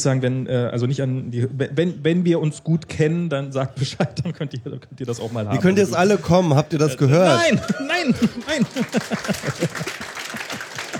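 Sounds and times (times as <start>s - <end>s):
speech: 0.0s - 10.2s
laughter: 5.5s - 10.9s
audience applause: 7.3s - 10.9s.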